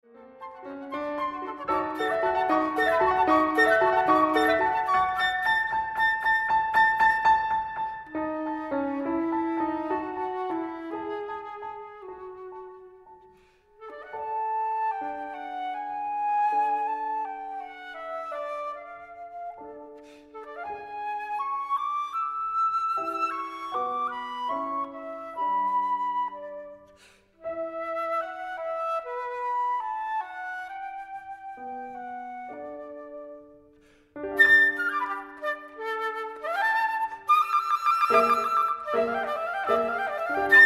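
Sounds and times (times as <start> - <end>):
flute playing a sonata in D major: 0.0 - 40.6
piano playing a sonata in D major: 0.0 - 40.6.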